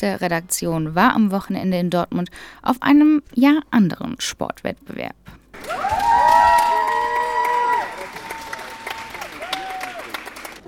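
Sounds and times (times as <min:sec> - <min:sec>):
speech: 0:00.0 - 0:06.1
audience applause in a sports hall: 0:05.5 - 0:10.6.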